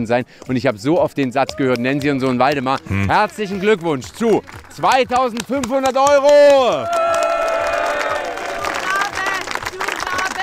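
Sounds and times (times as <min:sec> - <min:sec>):
speech: 0:00.0 - 0:07.0
person shouting: 0:02.8 - 0:03.2
crowd cheering and whooping: 0:06.5 - 0:10.4.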